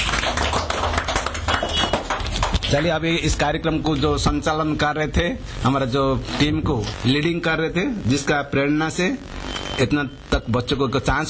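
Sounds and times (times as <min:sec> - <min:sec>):
crowd clapping: 0:00.0 - 0:03.5
speech: 0:02.7 - 0:11.2.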